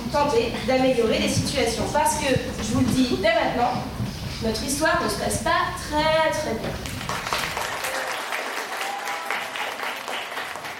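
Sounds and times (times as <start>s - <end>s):
speech: 0.1s - 6.9s
audience applause after a theatre play: 6.9s - 10.7s.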